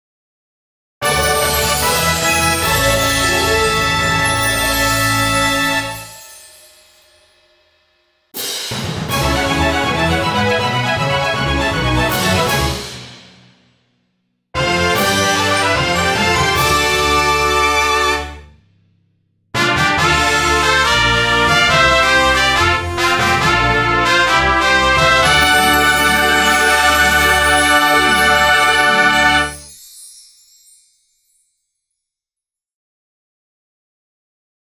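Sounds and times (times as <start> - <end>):
jingle: 1.0 - 8.2, 9.1 - 13.0, 14.6 - 18.5, 19.6 - 32.3.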